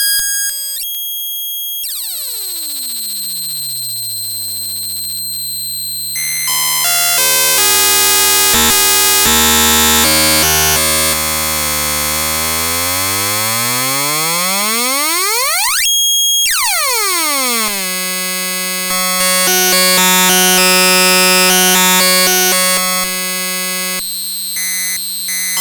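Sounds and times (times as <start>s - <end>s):
FPGA Game Boy noise wave: 1.8s - 25.6s.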